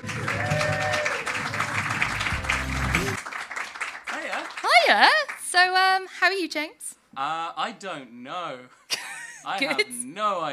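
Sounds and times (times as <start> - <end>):
crowd whooping and shouting: 0.0 - 3.2
crowd clapping: 0.0 - 5.6
speech: 4.9 - 8.8, 9.4 - 10.5
laughter: 9.0 - 10.0.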